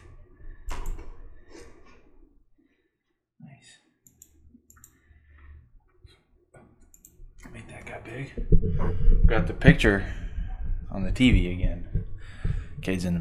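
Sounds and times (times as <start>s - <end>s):
computer mouse clicking: 0.7s - 1.1s, 4.0s - 5.0s, 6.9s - 7.6s
speech: 8.1s - 10.2s, 10.9s - 11.9s, 12.8s - 13.2s.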